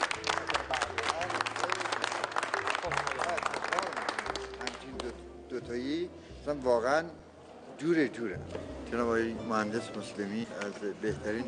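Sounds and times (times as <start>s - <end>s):
many hands clapping: 0.0s - 5.2s
speech: 6.5s - 7.2s, 7.8s - 11.4s.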